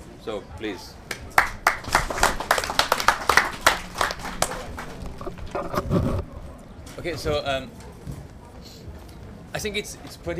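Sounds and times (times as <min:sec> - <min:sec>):
speech: 0:00.2 - 0:02.2, 0:05.6 - 0:06.3, 0:07.0 - 0:07.8, 0:09.6 - 0:10.3
audience clapping: 0:01.0 - 0:05.5.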